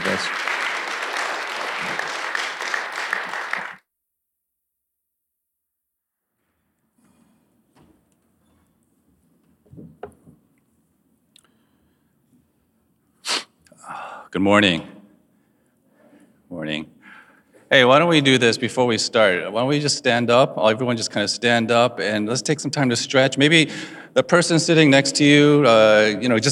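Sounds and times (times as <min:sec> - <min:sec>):
audience applause: 0:00.0 - 0:03.8
speech: 0:00.2 - 0:00.4, 0:14.3 - 0:14.9, 0:17.7 - 0:26.5.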